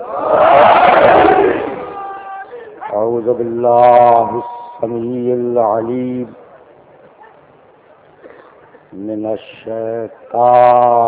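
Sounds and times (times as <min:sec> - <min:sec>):
crowd shouting a slogan in unison: 0:00.0 - 0:02.8
speech: 0:03.2 - 0:06.4, 0:08.9 - 0:11.0.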